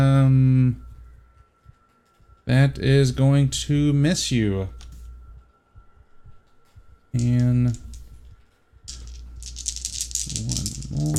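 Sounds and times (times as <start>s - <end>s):
speech: 2.5s - 4.8s, 7.1s - 7.8s
dice rolling: 7.2s - 8.2s, 8.9s - 11.1s.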